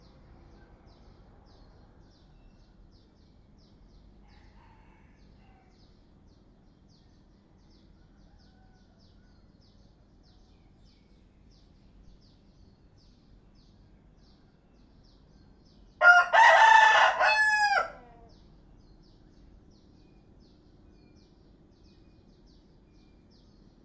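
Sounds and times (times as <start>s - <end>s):
rooster crowing: 16.0s - 18.4s.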